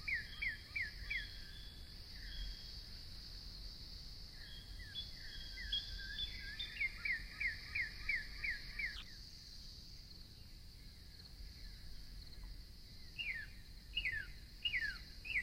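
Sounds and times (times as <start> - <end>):
Northern cardinal song: 0.0 - 2.6, 4.4 - 9.0, 13.2 - 15.4.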